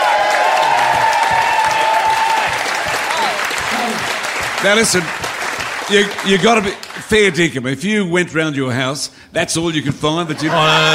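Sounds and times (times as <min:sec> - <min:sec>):
crowd cheering and whooping: 0:00.0 - 0:04.6, 0:10.5 - 0:10.9
crowd applause: 0:00.0 - 0:07.3
speech: 0:04.6 - 0:05.3, 0:05.9 - 0:10.9.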